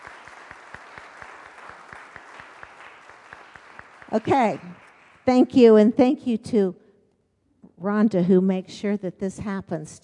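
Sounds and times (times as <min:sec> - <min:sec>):
round of applause from a crowd: 0:00.0 - 0:05.3
speech: 0:04.1 - 0:06.8, 0:07.8 - 0:10.0.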